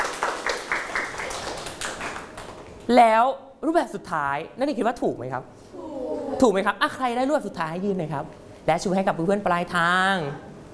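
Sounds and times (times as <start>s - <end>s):
students clapping: 0.0s - 2.7s
speech: 2.9s - 5.6s, 6.4s - 10.5s.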